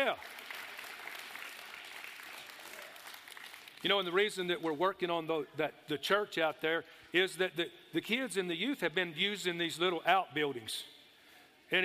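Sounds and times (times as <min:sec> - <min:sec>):
audience applauding: 0:00.0 - 0:03.8
speech: 0:00.1 - 0:00.4, 0:03.8 - 0:11.0.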